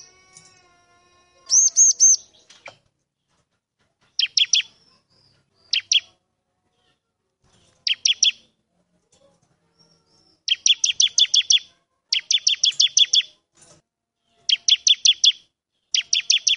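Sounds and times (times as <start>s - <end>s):
bar-winged prinia singing vigorously: 1.5s - 2.8s, 4.2s - 6.2s, 7.8s - 8.5s, 9.8s - 13.4s, 14.4s - 16.5s.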